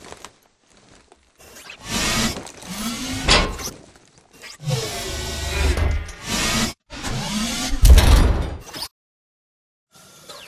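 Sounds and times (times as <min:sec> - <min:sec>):
titan mechanism raising and lowering: 0:01.4 - 0:08.9.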